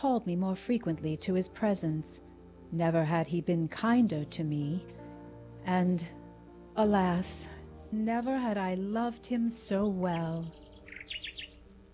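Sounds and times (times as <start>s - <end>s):
speech: 0.0s - 5.0s, 5.6s - 6.2s, 6.8s - 11.2s
low steady hum: 0.0s - 11.9s
nightingale singing in distant woods on a midsummer evening: 9.6s - 11.8s.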